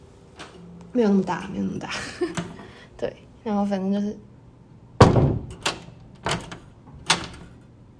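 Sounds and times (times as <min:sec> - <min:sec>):
speech: 0:00.9 - 0:02.4, 0:03.0 - 0:04.3
door latch rattling: 0:05.0 - 0:07.6
old wooden door closing: 0:05.0 - 0:07.6.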